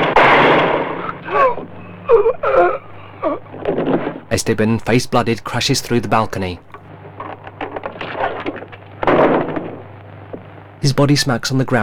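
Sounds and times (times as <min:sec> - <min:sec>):
rifle shot fired from a top-floor window: 0:00.0 - 0:01.2, 0:09.0 - 0:09.9
strained moaning vocal cries: 0:01.2 - 0:03.6
speech: 0:02.1 - 0:02.6, 0:04.4 - 0:06.7, 0:10.8 - 0:11.8.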